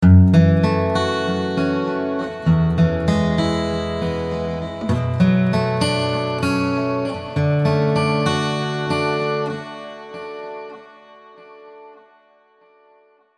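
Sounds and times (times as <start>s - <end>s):
guitar with tape delay and spring reverb: 0.0s - 13.3s.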